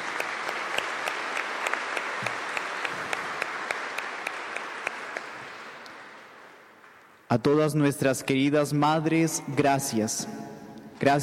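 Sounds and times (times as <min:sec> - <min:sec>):
audience applause: 0:00.0 - 0:07.1
speech: 0:07.3 - 0:11.2.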